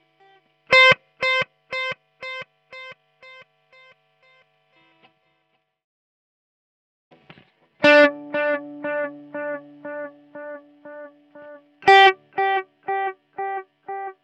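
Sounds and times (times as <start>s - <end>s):
guitar through multi-effects pedal with chorus reverb and delay: 0.7s - 4.4s, 7.8s - 14.2s.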